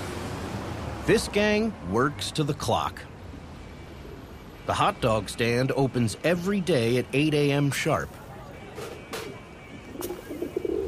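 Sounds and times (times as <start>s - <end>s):
noise: 0.0s - 10.8s
speech: 1.1s - 3.1s, 4.7s - 8.2s
pigeons cooing at a city hot dog stand: 9.2s - 10.8s.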